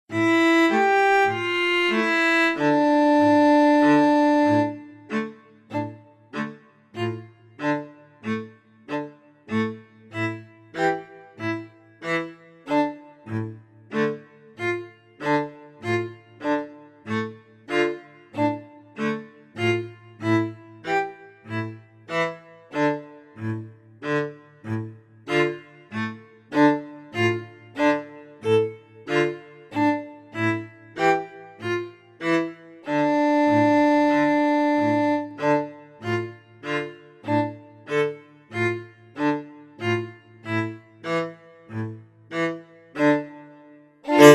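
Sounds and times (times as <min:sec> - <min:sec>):
klezmer music at a festival: 0:00.1 - 0:44.3.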